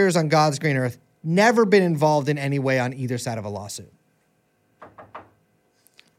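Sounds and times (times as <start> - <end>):
speech: 0.0 - 4.0
knocking on a wooden frame: 4.8 - 5.4.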